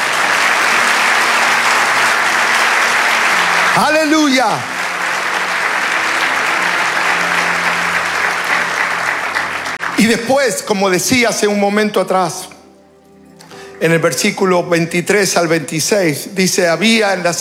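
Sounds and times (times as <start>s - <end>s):
audience applause: 0.0s - 11.4s
speech: 3.8s - 4.7s, 10.0s - 12.5s, 13.8s - 17.3s.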